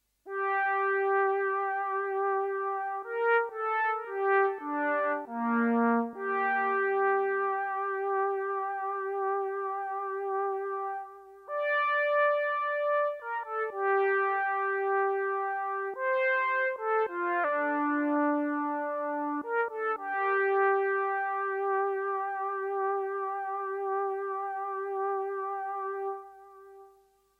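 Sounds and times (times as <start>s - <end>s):
Moog synthesizer: 0.3s - 27.1s.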